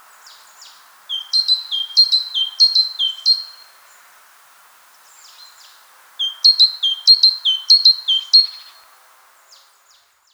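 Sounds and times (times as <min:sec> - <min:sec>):
faint soft bird call: 0:00.6 - 0:03.6, 0:06.2 - 0:08.8
great tit song: 0:01.1 - 0:03.6, 0:06.2 - 0:08.6.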